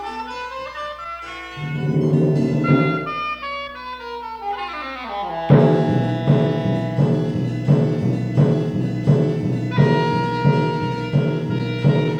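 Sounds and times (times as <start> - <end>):
harpsichord: 1.6 - 3.5, 5.5 - 12.1.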